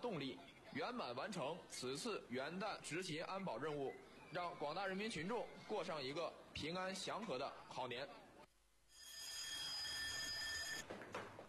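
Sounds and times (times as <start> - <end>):
speech: 0.0 - 8.2
electric bell ringing for emergency assembly: 9.0 - 10.8.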